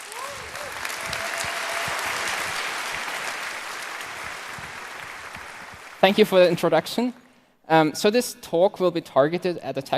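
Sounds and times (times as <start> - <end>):
audience applause: 0.0 - 6.8
speech: 6.0 - 9.9.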